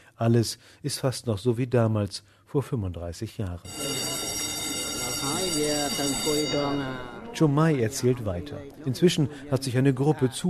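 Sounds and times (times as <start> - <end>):
speech: 0.2 - 4.0, 5.2 - 10.4
courtroom bell ringing to resume proceedings: 3.7 - 9.1.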